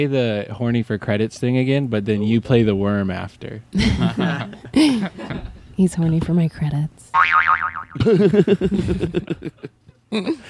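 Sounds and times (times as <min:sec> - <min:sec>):
speech: 0:00.0 - 0:10.4
laughter: 0:03.8 - 0:05.6, 0:08.0 - 0:10.4
cartoonish boing sound effect: 0:07.1 - 0:08.1.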